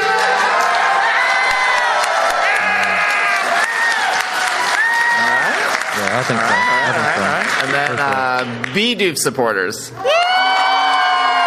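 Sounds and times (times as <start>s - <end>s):
convention audience at PAX East 2022 cheering in applause and whoops: 0.0s - 7.6s, 10.0s - 11.4s
speech: 6.2s - 10.4s.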